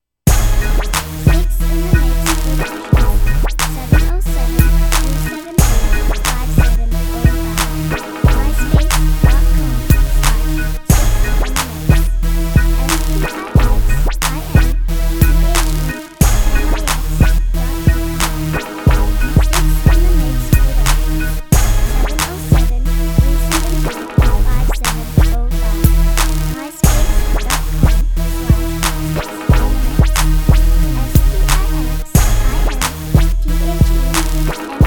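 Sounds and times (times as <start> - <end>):
music beat: 0.3 - 34.8.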